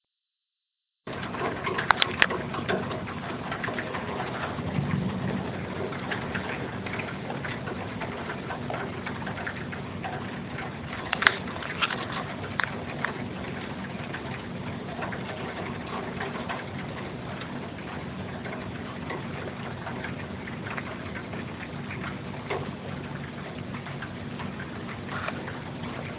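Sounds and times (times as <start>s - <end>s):
thunderstorm: 1.1s - 26.1s.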